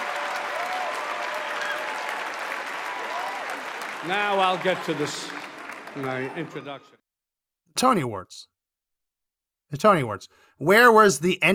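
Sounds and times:
cheers and whoops: 0:00.0 - 0:06.9
large crowd applauding loudly: 0:00.0 - 0:07.0
speech: 0:04.0 - 0:07.0, 0:07.7 - 0:08.5, 0:09.7 - 0:11.5.

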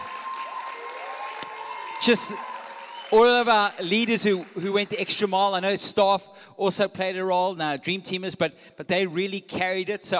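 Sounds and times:
audience round of applause: 0:00.0 - 0:05.3
speech: 0:02.0 - 0:02.5, 0:03.1 - 0:10.1.

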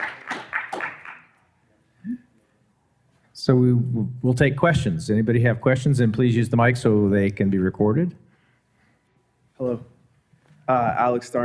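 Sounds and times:
audience applause: 0:00.0 - 0:01.4
speech: 0:03.4 - 0:08.2, 0:10.7 - 0:11.4.

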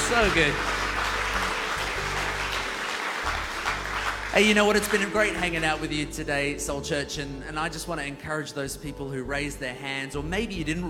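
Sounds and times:
audience applause: 0:00.0 - 0:05.8
speech: 0:00.1 - 0:00.8, 0:04.4 - 0:10.8.

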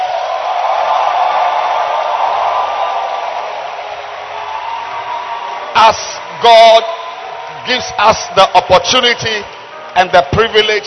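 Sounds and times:
audience clapping hands loudly: 0:00.0 - 0:10.6
speech: 0:05.9 - 0:06.9, 0:07.6 - 0:10.8.

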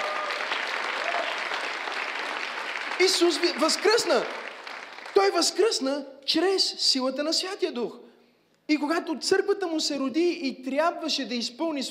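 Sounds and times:
audience applauding: 0:00.0 - 0:05.6
speech: 0:03.0 - 0:04.4, 0:05.2 - 0:08.1, 0:08.7 - 0:11.9.

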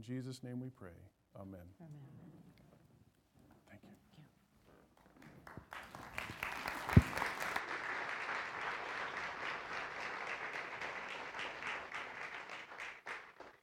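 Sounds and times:
speech: 0:00.0 - 0:02.6
audience applause: 0:05.2 - 0:13.6.

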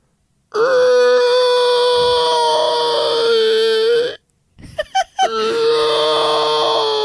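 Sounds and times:
person imitating a baby T-Rex roar: 0:00.5 - 0:04.2, 0:05.3 - 0:07.0.

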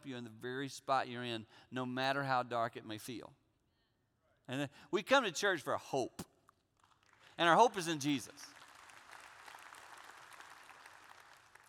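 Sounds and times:
speech: 0:00.0 - 0:03.4, 0:04.5 - 0:06.3, 0:07.4 - 0:08.6
scattered half-hearted applause from a crowd: 0:08.4 - 0:11.6.

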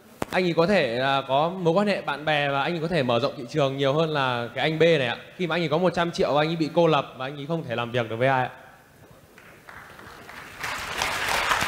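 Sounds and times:
speech: 0:00.3 - 0:08.6
audience applause: 0:09.4 - 0:11.6.

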